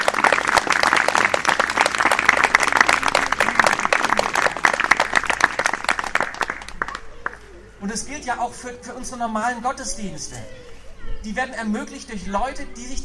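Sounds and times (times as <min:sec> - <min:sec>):
audience applause: 0:00.0 - 0:07.4
speech: 0:07.9 - 0:10.6, 0:11.2 - 0:13.0.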